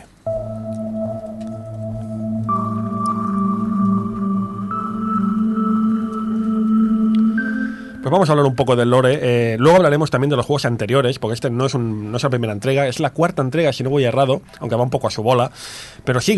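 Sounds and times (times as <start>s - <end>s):
space-themed background music: 0.3s - 9.2s
speech: 8.1s - 16.3s.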